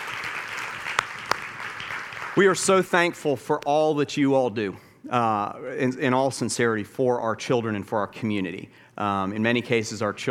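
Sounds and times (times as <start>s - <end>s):
audience applause: 0.0s - 2.6s
speech: 2.4s - 10.2s.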